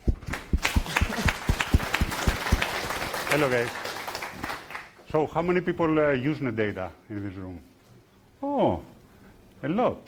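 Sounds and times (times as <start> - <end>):
audience applause: 0.3 - 5.0
speech: 3.3 - 3.8, 5.1 - 7.7, 8.4 - 8.9, 9.6 - 10.0.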